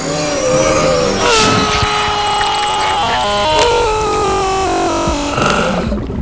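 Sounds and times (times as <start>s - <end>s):
person screaming: 0.3s - 5.2s.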